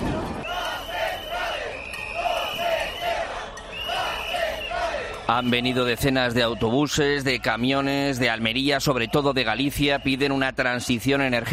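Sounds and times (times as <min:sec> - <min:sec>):
protest crowd chanting in unison: 0:00.0 - 0:06.6
speech: 0:05.3 - 0:11.5.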